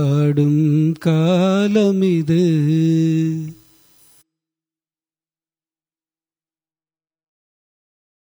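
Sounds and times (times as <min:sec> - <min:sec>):
Carnatic music in raga chandrakauns: 0:00.0 - 0:04.2.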